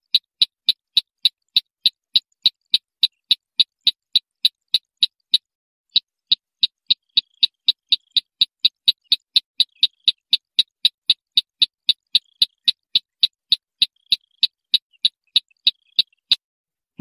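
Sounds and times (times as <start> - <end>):
white-breasted waterhen train of sharp clicks: 0.0 - 16.4.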